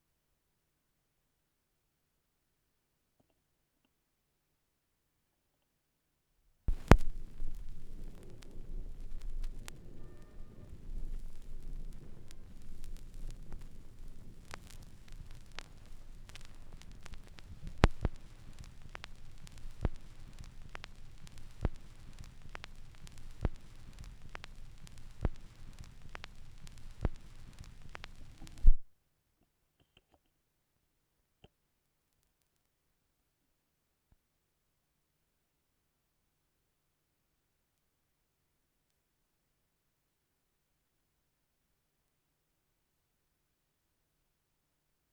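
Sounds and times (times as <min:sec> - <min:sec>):
vinyl record noise: 0:06.7 - 0:28.9.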